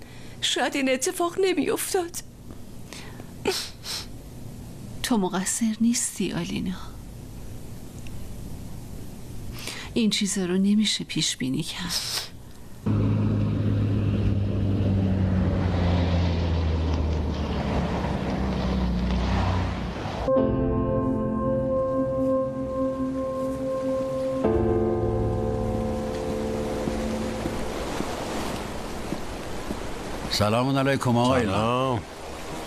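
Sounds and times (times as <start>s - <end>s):
speech: 0.4s - 2.3s, 3.4s - 3.7s, 5.1s - 6.9s, 10.0s - 13.1s, 30.4s - 32.2s
steady low droning hum: 6.7s - 10.0s, 12.4s - 30.3s
stormy sea waves rushing and roaring: 12.8s - 20.3s, 22.1s - 32.6s.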